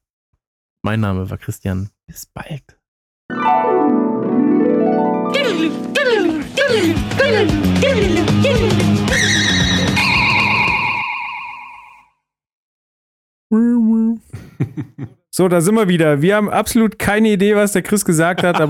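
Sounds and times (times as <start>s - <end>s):
speech: 0.8s - 2.8s, 5.3s - 9.8s, 14.8s - 18.6s
podcast electronic jingle: 3.3s - 6.2s, 9.6s - 12.0s
laughter: 5.4s - 9.1s, 14.3s - 15.2s, 18.1s - 18.6s.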